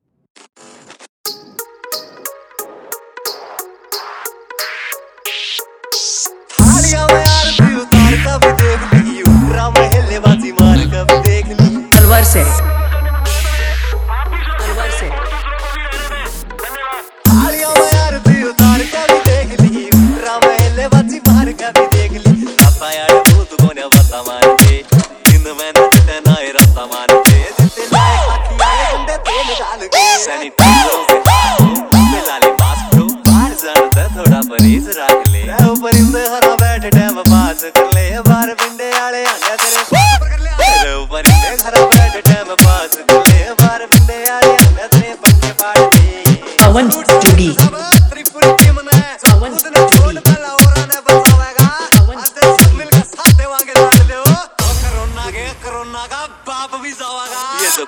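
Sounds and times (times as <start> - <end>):
Haryanvi DJ remix song: 1.3 - 57.8.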